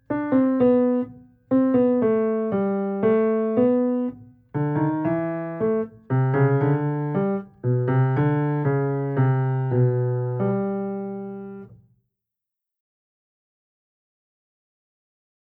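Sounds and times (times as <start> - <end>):
piano legato exercise for the left hand: 0.0 - 11.9.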